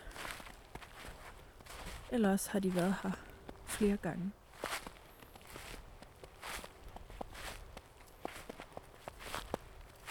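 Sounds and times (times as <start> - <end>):
footsteps crunching in snow: 0.0 - 10.0
speech: 2.1 - 4.4.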